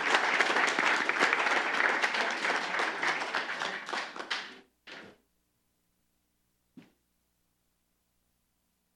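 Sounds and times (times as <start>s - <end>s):
crowd applauding: 0.0s - 4.7s.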